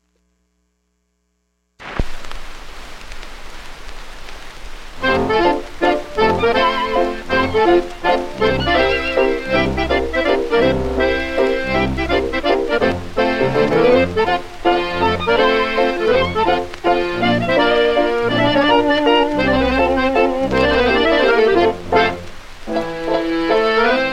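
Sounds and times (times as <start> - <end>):
hambo folk dance music: 5.0 - 24.1.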